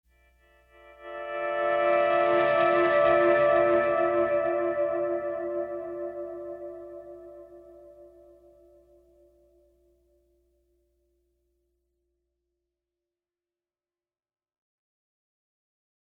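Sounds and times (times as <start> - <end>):
pleasant guitar playing: 0.7 - 8.9.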